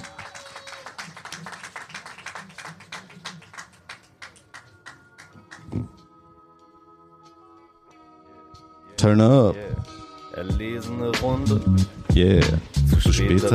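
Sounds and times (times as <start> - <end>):
audience applause: 0.0 - 5.7
speech: 9.0 - 13.5.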